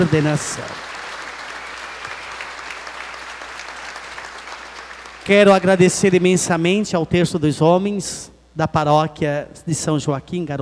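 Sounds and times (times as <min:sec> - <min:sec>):
speech: 0:00.0 - 0:00.9, 0:05.3 - 0:10.6
audience applause: 0:00.0 - 0:06.4.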